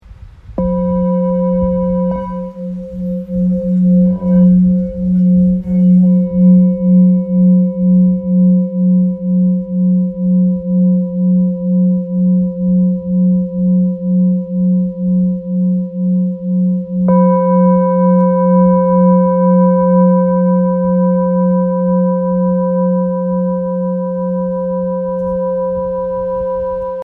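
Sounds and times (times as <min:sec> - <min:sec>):
Tibetan singing bowl tuned to F: 0:00.6 - 0:27.0.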